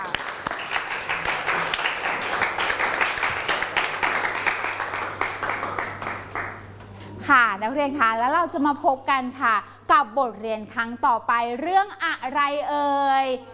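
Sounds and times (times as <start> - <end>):
students applauding: 0.0 - 6.7
speech: 7.3 - 13.5.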